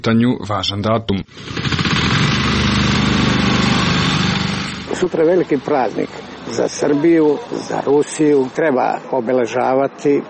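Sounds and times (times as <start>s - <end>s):
speech: 0.0s - 1.7s, 5.0s - 10.2s
lawn mower cutting grass, run by city workers: 1.3s - 9.0s.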